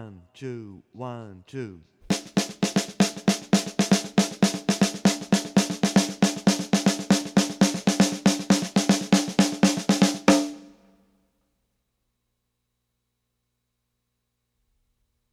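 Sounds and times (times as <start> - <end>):
samba snare drum on a drumset: 2.1 - 10.7.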